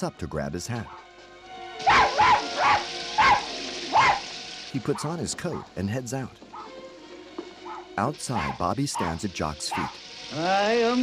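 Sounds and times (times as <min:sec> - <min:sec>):
speech: 0:00.0 - 0:01.1, 0:04.7 - 0:06.4, 0:08.0 - 0:11.0
dog barking: 0:01.8 - 0:04.2, 0:07.6 - 0:10.0.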